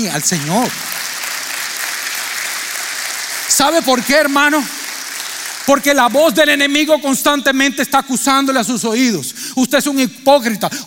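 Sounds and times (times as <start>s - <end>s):
speech: 0.0s - 1.1s, 3.6s - 4.8s, 5.6s - 10.8s
audience applause: 0.0s - 6.8s.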